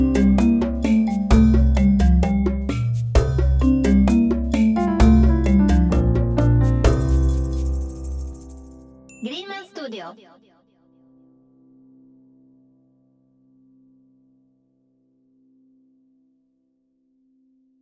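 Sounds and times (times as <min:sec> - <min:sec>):
marimbas: 0:00.0 - 0:09.4.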